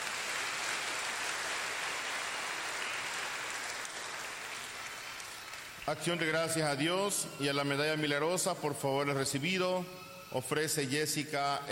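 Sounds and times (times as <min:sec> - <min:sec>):
audience applause: 0:00.0 - 0:05.8
speech: 0:05.9 - 0:11.7.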